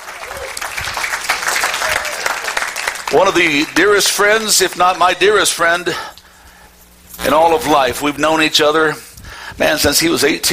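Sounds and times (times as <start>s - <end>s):
church audience applause welcoming a pastor: 0.0s - 4.5s
speech: 3.1s - 6.2s, 7.2s - 10.5s.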